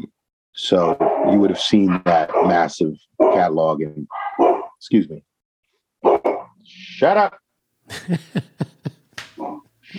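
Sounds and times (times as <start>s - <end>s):
speech: 0.6s - 5.3s, 6.7s - 8.7s
dog barking: 2.2s - 2.6s, 4.1s - 4.8s, 6.0s - 6.5s
laughter: 7.9s - 9.9s.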